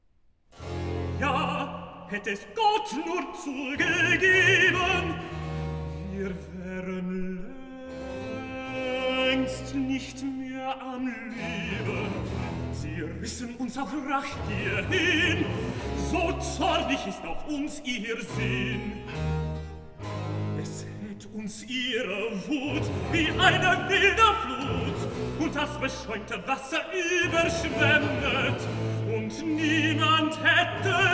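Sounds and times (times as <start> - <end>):
tenor singing cantata recitative: 1.0 - 31.1.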